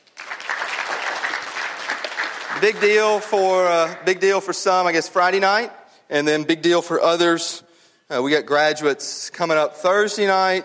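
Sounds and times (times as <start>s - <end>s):
audience applauding graduates: 0.0s - 4.2s
speech: 2.6s - 10.6s.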